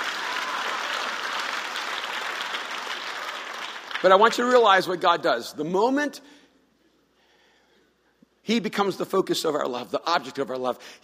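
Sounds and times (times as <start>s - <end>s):
audience clapping: 0.0s - 4.7s
speech: 4.0s - 6.4s, 8.5s - 11.0s.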